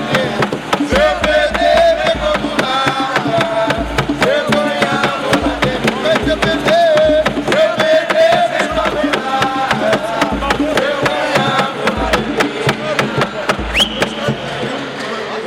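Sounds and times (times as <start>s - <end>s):
batuque de umbigada music: 0.0s - 15.3s.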